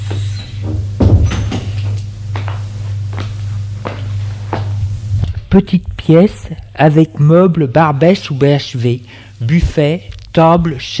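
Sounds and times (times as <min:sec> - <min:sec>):
low droning hum: 0:00.0 - 0:10.9
door being opened: 0:00.4 - 0:02.1
speech: 0:05.5 - 0:10.9.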